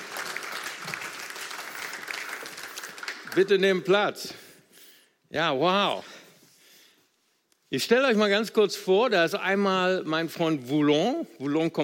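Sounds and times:
crowd applauding: 0.0 - 3.9
speech: 3.4 - 4.4, 5.3 - 6.1, 7.7 - 11.8.

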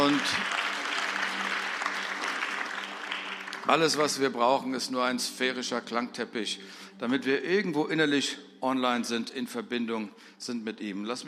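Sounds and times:
speech: 0.0 - 0.6, 3.7 - 11.2
audience clapping: 0.0 - 4.5.

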